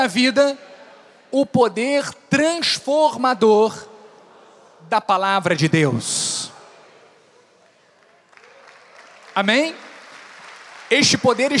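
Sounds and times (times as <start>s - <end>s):
speech: 0.0s - 0.7s, 1.3s - 3.9s, 4.8s - 6.4s, 9.4s - 9.8s, 10.9s - 11.5s
audience applause: 7.9s - 11.5s.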